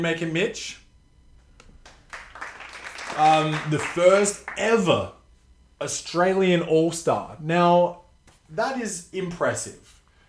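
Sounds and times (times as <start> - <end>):
speech: 0.0 - 0.8, 3.2 - 5.2, 5.8 - 10.0
people clapping: 1.6 - 5.1.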